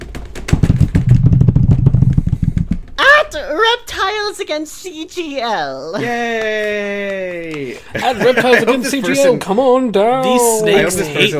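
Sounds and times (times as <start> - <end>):
drum roll: 0.0 - 3.3
speech: 3.4 - 11.3
laughter: 7.6 - 9.4.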